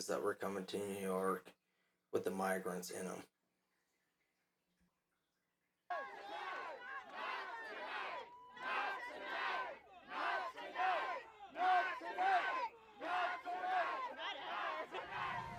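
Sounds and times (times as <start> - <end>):
speech: 0.0 - 3.4
protest crowd shouting and chanting in unison: 5.9 - 15.5.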